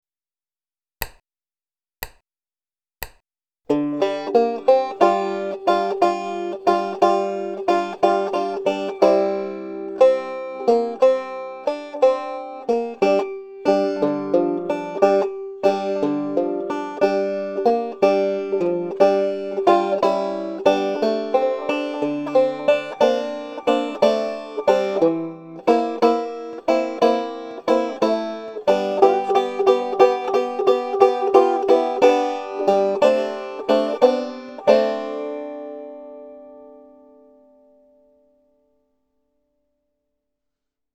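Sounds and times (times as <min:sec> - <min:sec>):
eight-bar blues scheme: 0:03.7 - 0:37.5.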